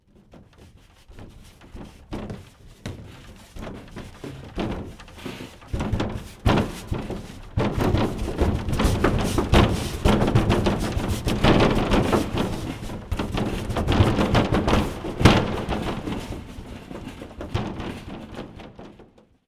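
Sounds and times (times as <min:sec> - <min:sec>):
wardrobe rolling: 0:00.2 - 0:18.6
knocks inside wardrobe: 0:01.8 - 0:19.1.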